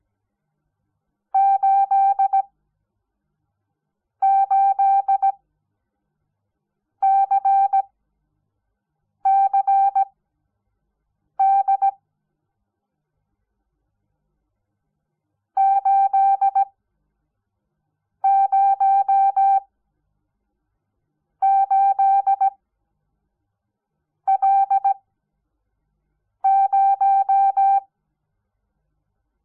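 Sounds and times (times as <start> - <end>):
morse code beeps: 1.4 - 2.4, 4.2 - 5.4, 7.0 - 7.8, 9.3 - 10.1, 11.4 - 12.0, 15.6 - 16.7, 18.3 - 19.6, 21.4 - 22.5, 24.3 - 25.0, 26.5 - 27.9.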